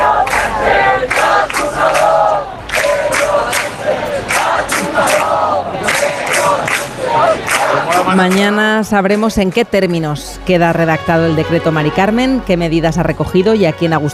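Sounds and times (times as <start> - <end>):
crowd booing outside: 0.0 - 9.2
speech: 8.2 - 14.1.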